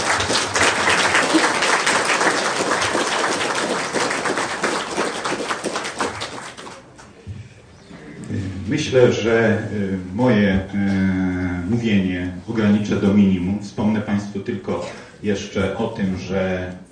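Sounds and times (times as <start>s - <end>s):
audience applause welcoming a priest: 0.0s - 6.9s
speech: 8.7s - 16.9s.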